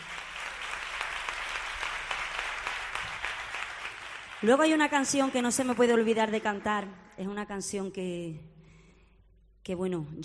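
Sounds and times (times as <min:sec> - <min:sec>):
crowd applauding: 0:00.0 - 0:06.8
speech: 0:04.4 - 0:08.5, 0:09.6 - 0:10.2.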